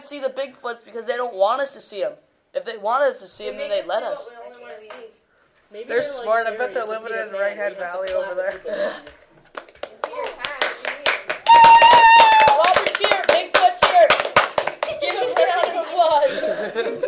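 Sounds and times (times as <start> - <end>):
speech: 0.1 - 9.2
people clapping hands: 8.0 - 16.1
laughter: 14.7 - 17.0.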